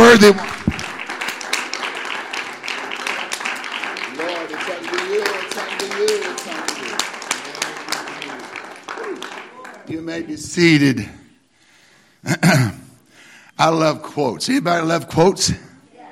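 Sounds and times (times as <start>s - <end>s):
audience clapping: 0.0s - 10.1s
speech: 0.1s - 0.6s, 10.2s - 11.2s, 12.2s - 12.8s, 13.6s - 15.7s.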